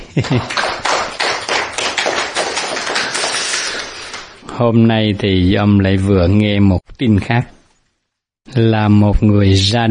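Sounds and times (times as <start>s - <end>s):
audience clapping at a Buddhist gathering: 0.1s - 4.4s
speech: 0.2s - 0.7s, 4.6s - 7.6s, 8.5s - 9.8s.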